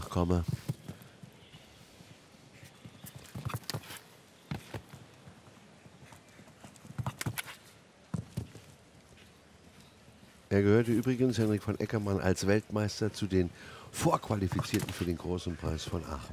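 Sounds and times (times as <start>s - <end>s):
steady outdoor hiss: 0.0s - 16.3s
speech: 0.1s - 0.7s, 10.6s - 16.3s
horse hoofbeats on soft ground during show jumping: 0.3s - 12.6s.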